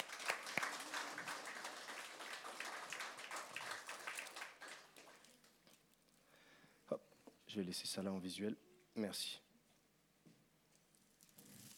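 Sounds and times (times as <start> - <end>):
audience applause: 0.0 - 5.7
speech: 6.9 - 9.4.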